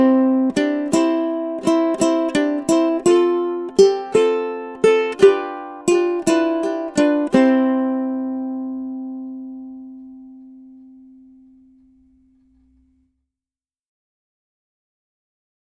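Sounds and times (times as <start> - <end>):
ukulele playing a song: 0.0 - 12.3.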